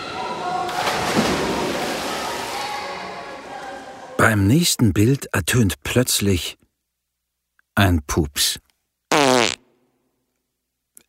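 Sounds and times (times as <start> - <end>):
children splashing in a swimming pool: 0.0 - 4.0
speech: 4.2 - 6.6, 7.8 - 8.6.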